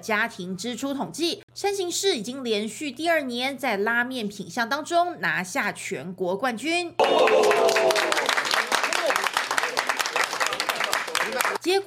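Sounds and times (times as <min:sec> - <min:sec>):
speech: 0:00.0 - 0:07.9
crowd applauding: 0:07.0 - 0:11.6.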